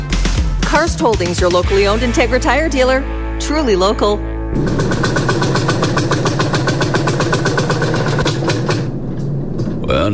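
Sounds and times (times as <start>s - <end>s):
speech: 0.8s - 5.1s, 9.9s - 10.1s
farm vehicle engine chugging as it runs out of fuel in a field: 4.5s - 10.1s.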